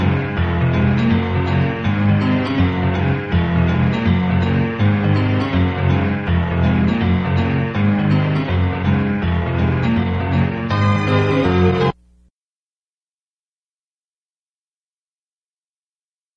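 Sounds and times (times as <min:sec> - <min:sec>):
bounding instrumental music: 0:00.0 - 0:12.1.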